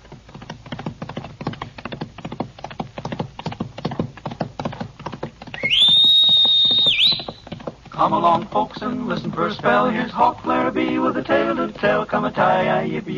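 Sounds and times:
clip-clop hoofbeats: 0:00.0 - 0:12.0
hawk whistle signal: 0:05.6 - 0:07.4
speech: 0:08.0 - 0:13.1.

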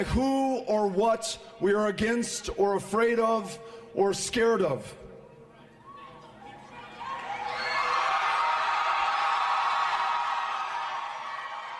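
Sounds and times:
speech: 0:00.0 - 0:05.0
large rally crowd cheering and roaring: 0:06.0 - 0:11.7.

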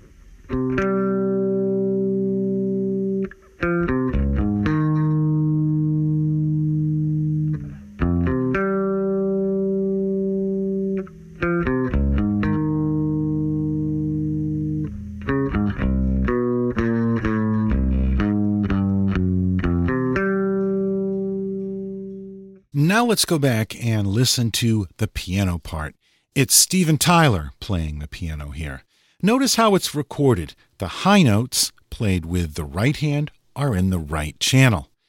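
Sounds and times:
isolated electric bass guitar part from a rock song: 0:00.0 - 0:22.6
speech: 0:23.1 - 0:34.9.

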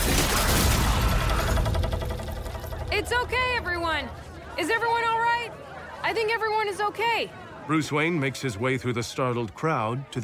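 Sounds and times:
betusked mounted whale crashing down: 0:00.0 - 0:04.5
speech: 0:02.9 - 0:10.2.

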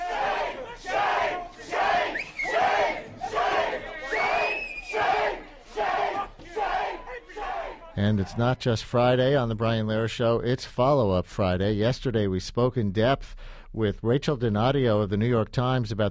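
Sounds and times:
protesters at the New School shouting: 0:00.0 - 0:08.4
speech: 0:08.0 - 0:16.0.

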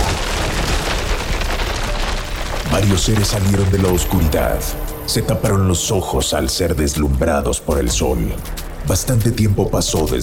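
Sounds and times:
rocks collapsing at a tunnel entrance: 0:00.0 - 0:10.2
speech: 0:02.8 - 0:10.2.

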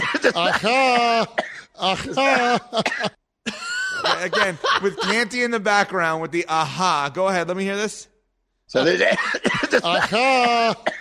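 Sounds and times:
recorded cough: 0:00.0 - 0:03.2, 0:08.8 - 0:10.9
speech: 0:00.2 - 0:08.1, 0:08.7 - 0:10.9
laughter: 0:02.1 - 0:05.1.

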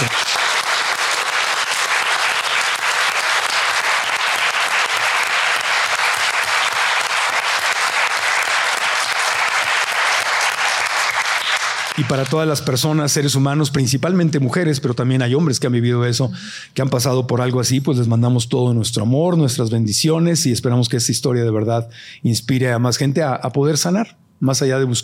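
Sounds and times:
audience applause: 0:00.0 - 0:12.6
speech: 0:12.1 - 0:25.0.

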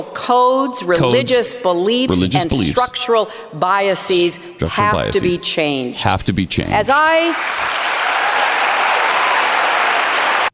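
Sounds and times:
speech: 0:00.0 - 0:07.9
thunderous applause from a large crowd: 0:07.2 - 0:10.5.

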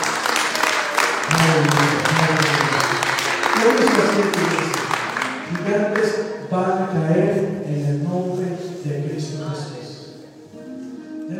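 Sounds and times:
audience applause: 0:00.0 - 0:06.0
speech: 0:03.6 - 0:04.8, 0:05.5 - 0:09.8.

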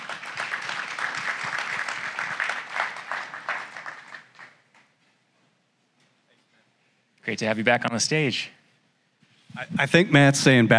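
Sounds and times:
audience applause welcoming a speaker: 0:00.0 - 0:04.8
speech: 0:07.3 - 0:08.6, 0:09.6 - 0:10.7.

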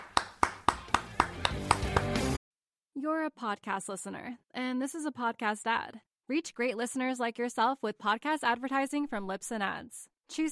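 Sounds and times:
claps applauding a caller on a call-in show: 0:00.0 - 0:02.4
speech: 0:03.0 - 0:10.4.

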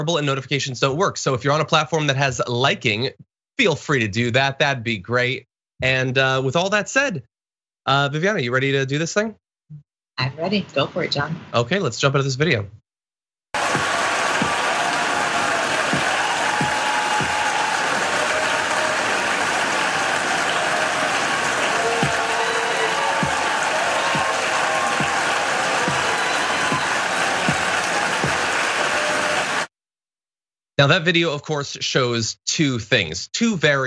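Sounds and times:
speech: 0:00.0 - 0:12.8, 0:30.8 - 0:33.8
people clapping: 0:13.6 - 0:29.7.

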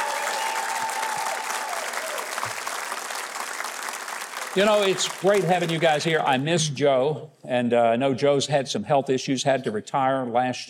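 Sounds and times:
audience applause welcoming a band: 0:00.0 - 0:06.2
speech: 0:04.5 - 0:10.6.

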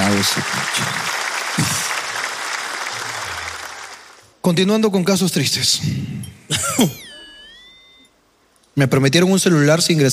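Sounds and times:
small group applause: 0:00.0 - 0:04.4
speech: 0:00.2 - 0:01.0, 0:04.4 - 0:07.1, 0:08.8 - 0:10.1.

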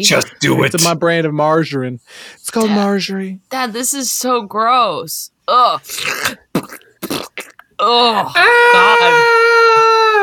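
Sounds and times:
speech: 0:00.0 - 0:07.2, 0:07.8 - 0:10.2
person screaming: 0:07.8 - 0:10.2.

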